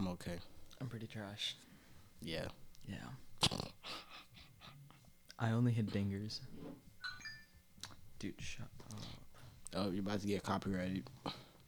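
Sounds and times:
speech: 0.1s - 4.0s, 5.4s - 6.9s, 8.2s - 11.5s
phone notification ringer sound: 7.0s - 7.6s.

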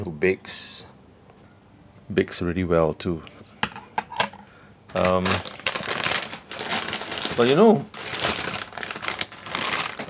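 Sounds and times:
speech: 0.0s - 0.9s, 2.1s - 3.4s, 4.9s - 5.5s, 7.4s - 8.0s
cereal being poured out: 4.9s - 10.0s.

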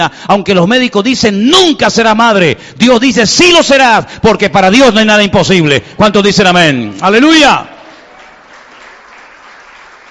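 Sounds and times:
speech: 0.0s - 7.7s
audience applause: 7.8s - 10.0s.

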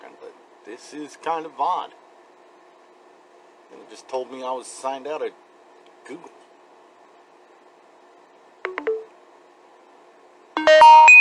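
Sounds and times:
speech: 0.7s - 2.0s, 3.7s - 5.4s, 6.1s - 6.3s
phone notification chime: 8.7s - 9.1s, 10.6s - 11.2s.

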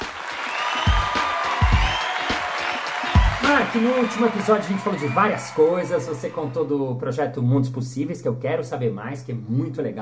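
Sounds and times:
audience applause: 0.0s - 6.7s
speech: 3.6s - 10.0s.

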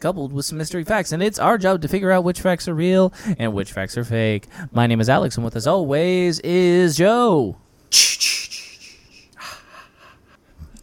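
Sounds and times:
speech: 0.0s - 8.4s
voice imitating horror-movie killer whisper noise: 7.9s - 10.0s.

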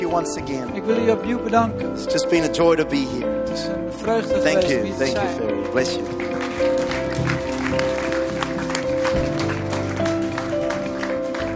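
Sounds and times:
speech: 0.1s - 7.0s
audience applause: 4.6s - 11.5s.

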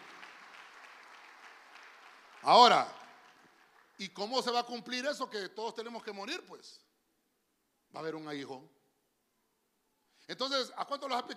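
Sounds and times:
audience clapping: 0.0s - 4.6s
speech: 2.4s - 3.0s, 4.0s - 6.9s, 7.9s - 8.8s, 10.3s - 11.3s.

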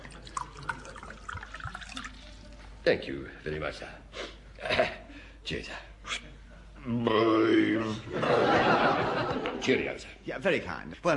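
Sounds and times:
sherry being poured into a glass: 0.0s - 2.6s
speech: 2.9s - 4.0s, 4.7s - 5.9s, 6.8s - 11.1s
laughter: 7.8s - 10.0s.

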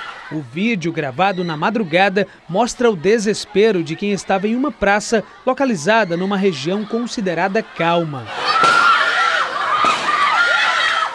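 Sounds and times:
crowd screaming and shouting in panic: 0.0s - 11.1s
speech: 0.3s - 8.7s
gunshots: 9.8s - 10.4s.

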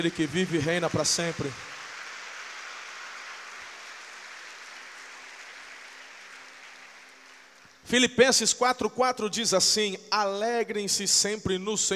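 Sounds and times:
speech: 0.0s - 1.8s, 7.9s - 11.9s
audience applause: 0.0s - 7.8s.

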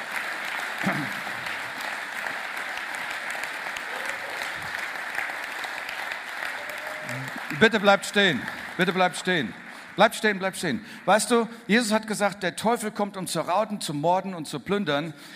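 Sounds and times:
crowd applause: 0.0s - 11.6s
speech: 0.8s - 1.2s, 7.6s - 15.3s.

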